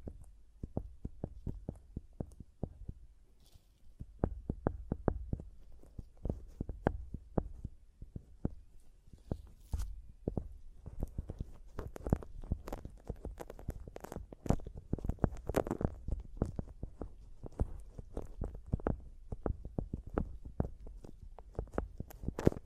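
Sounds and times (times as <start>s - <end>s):
fingers tapping on microphone: 0.0s - 3.2s, 3.9s - 22.6s
scraping crackles on microphone: 10.8s - 22.6s.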